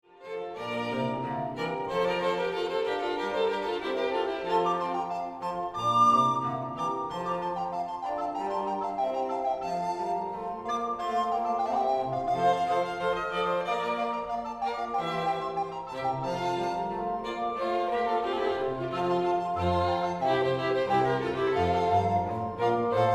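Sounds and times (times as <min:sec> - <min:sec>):
chamber quintet music in F: 0:00.1 - 0:23.1.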